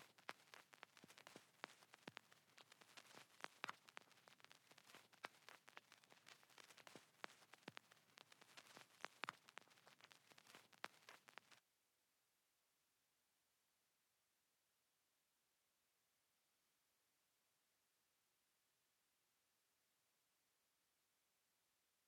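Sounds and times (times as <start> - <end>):
vinyl loop at 182 BPM in G minor: 0.0 - 11.6.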